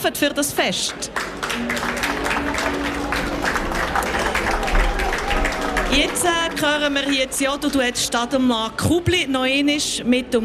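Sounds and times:
speech: 0:00.0 - 0:02.7, 0:05.9 - 0:10.4
audience applause: 0:00.9 - 0:08.2.

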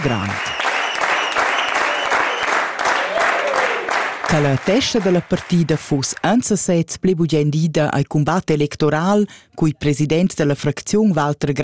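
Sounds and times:
speech: 0:00.0 - 0:00.5, 0:04.3 - 0:11.6
crowd applause: 0:00.0 - 0:05.8.

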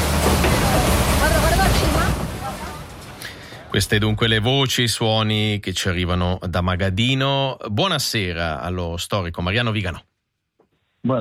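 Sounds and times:
paddle steamer boat on lake: 0:00.0 - 0:03.9
speech: 0:03.7 - 0:10.1.

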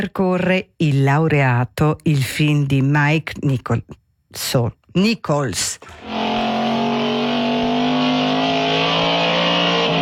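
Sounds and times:
speech: 0:00.0 - 0:06.3
1960s Alfa Romeo Duetto sports car engine droning: 0:05.9 - 0:10.0.

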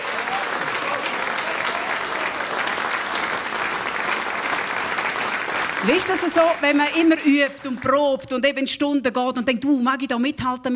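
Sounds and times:
audience applause: 0:00.0 - 0:08.3
speech: 0:05.8 - 0:10.7.

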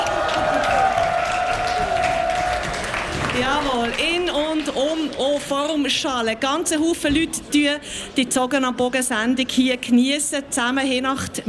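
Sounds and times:
outdoor crowd clapping and cheering: 0:00.0 - 0:05.8
speech: 0:03.4 - 0:11.4.

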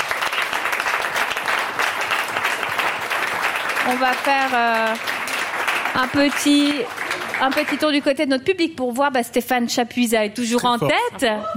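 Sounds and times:
audience applause: 0:00.0 - 0:08.0
speech: 0:03.9 - 0:05.2, 0:05.9 - 0:11.5
laughter: 0:10.5 - 0:11.5.

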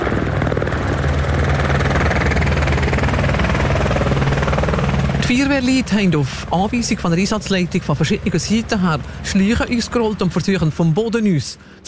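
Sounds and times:
firefighting helicopter rotor and engine roaring overhead: 0:00.0 - 0:11.8
speech: 0:05.3 - 0:11.8.

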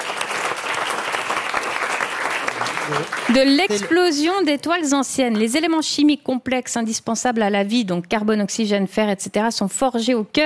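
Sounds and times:
audience applause: 0:00.0 - 0:04.2
speech: 0:02.9 - 0:10.4.

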